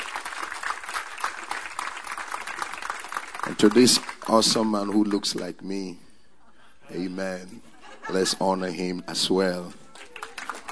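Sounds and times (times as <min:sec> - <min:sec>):
audience clapping: 0:00.0 - 0:05.5, 0:09.6 - 0:10.7
speech: 0:03.5 - 0:06.0, 0:06.9 - 0:09.8
laughter: 0:06.9 - 0:09.0.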